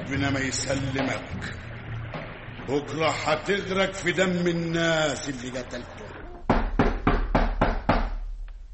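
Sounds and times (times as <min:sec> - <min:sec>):
speech: 0:00.1 - 0:01.7, 0:02.7 - 0:06.1
knocking on a door: 0:06.4 - 0:08.3.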